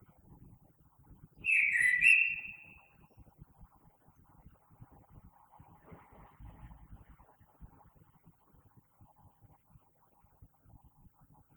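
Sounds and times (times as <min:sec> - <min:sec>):
bird with a blackbird-like mellow whistle: 0:01.4 - 0:02.8.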